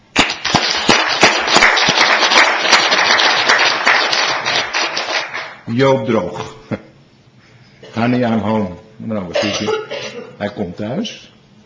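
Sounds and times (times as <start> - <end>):
group applauding: 0.1 - 5.6
speech: 5.7 - 6.8, 8.0 - 11.4.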